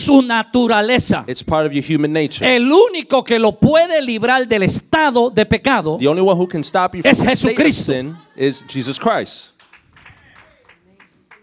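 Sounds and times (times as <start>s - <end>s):
speech: 0.0s - 9.5s
scattered applause from a few people: 9.6s - 11.4s.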